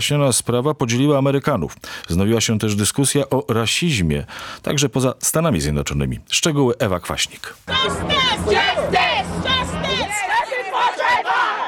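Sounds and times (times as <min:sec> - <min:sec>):
speech: 0:00.0 - 0:09.0
crowd of protesters outside police station: 0:07.7 - 0:11.6.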